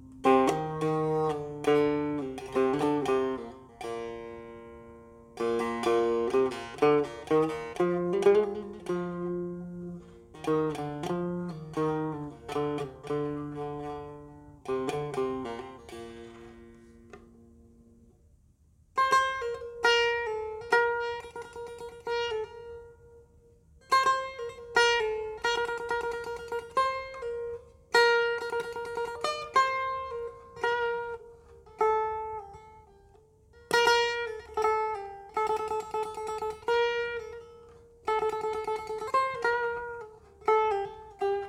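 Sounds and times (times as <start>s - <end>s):
setar playing: 0.0s - 18.1s, 18.9s - 41.4s.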